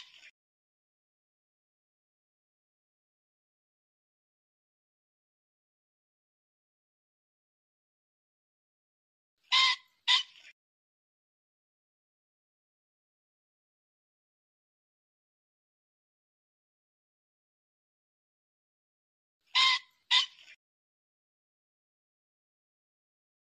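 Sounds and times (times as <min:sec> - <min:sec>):
pheasant harsh hoarse squawks: 0:09.5 - 0:10.5, 0:19.5 - 0:20.6.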